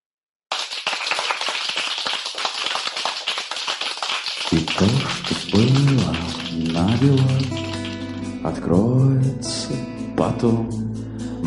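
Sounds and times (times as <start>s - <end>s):
crowd applause: 0.5s - 8.3s
speech: 4.5s - 7.7s, 8.4s - 10.8s.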